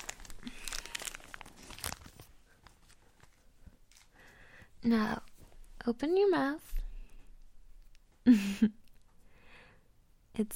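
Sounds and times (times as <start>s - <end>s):
chocolate mint wrapper crinkling as it is unwrapped: 0.0s - 4.3s
speech: 4.8s - 6.7s, 8.2s - 8.8s, 10.4s - 10.5s.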